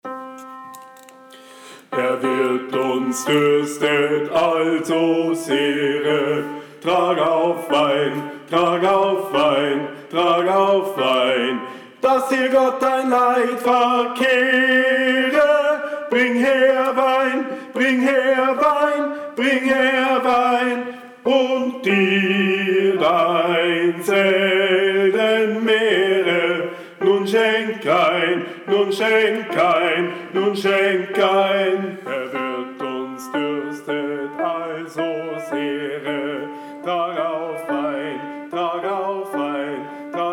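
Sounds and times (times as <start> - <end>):
innkeeper's voice: 2.0 - 40.3.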